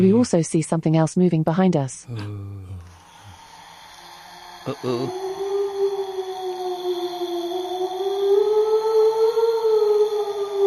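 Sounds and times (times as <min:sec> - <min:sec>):
speech: 0:00.0 - 0:02.7, 0:04.6 - 0:05.2
voice imitating a moaning ghost: 0:02.1 - 0:10.6.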